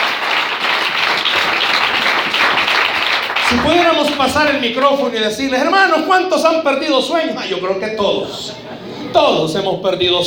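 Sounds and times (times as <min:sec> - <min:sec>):
audience applauding: 0:00.0 - 0:05.0
speech: 0:03.5 - 0:10.2.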